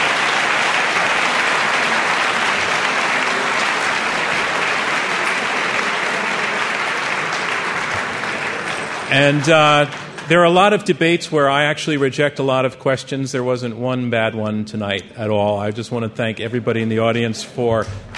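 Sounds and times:
audience applause: 0.0 - 11.7, 17.8 - 18.1
speech: 9.1 - 18.1.

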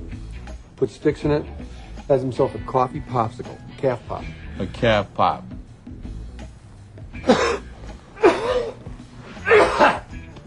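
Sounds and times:
speech: 0.8 - 5.5
smoker's cough: 7.2 - 8.8, 9.4 - 10.1.

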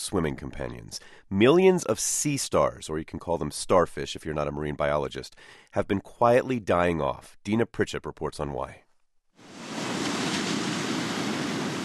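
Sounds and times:
speech: 0.0 - 8.8
ocean surf roaring at Boiler Bay on the Oregon coast: 9.4 - 11.8.

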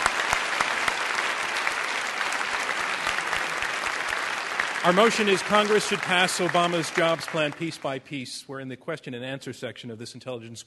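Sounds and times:
audience applause: 0.0 - 8.0
speech: 4.8 - 10.6.

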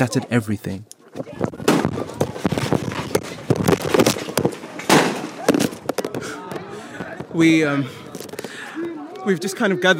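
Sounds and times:
speech: 0.0 - 1.4, 7.4 - 8.0, 9.2 - 9.9
gunfire as gunmen attack people queuing to vote: 1.7 - 6.2.

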